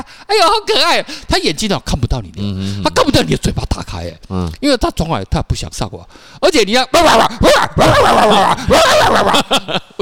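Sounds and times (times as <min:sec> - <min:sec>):
speech: 0:00.3 - 0:09.9
dog barking and yelping: 0:07.1 - 0:09.4
laughter: 0:07.8 - 0:09.9.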